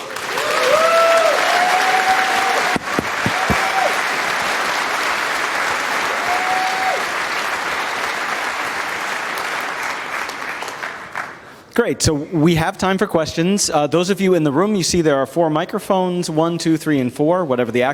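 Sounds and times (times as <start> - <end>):
crowd applause: 0.0 - 11.4
sharp knocks: 2.7 - 3.8
speech: 11.8 - 17.9.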